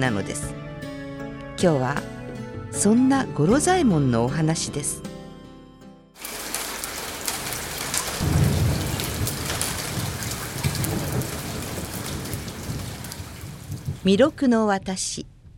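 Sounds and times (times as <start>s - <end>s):
speech: 0.0s - 0.6s, 1.6s - 5.1s, 14.0s - 15.3s
heavy rain shower: 6.2s - 14.2s
thunder rumbling: 6.2s - 14.5s.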